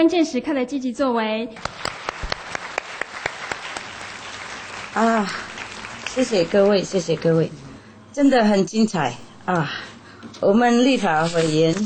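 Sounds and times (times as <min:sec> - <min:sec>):
speech: 0:00.0 - 0:01.9, 0:05.0 - 0:05.5, 0:06.2 - 0:07.6, 0:08.2 - 0:11.8
audience applause welcoming a speaker at a forum on saving the earth: 0:01.6 - 0:07.2.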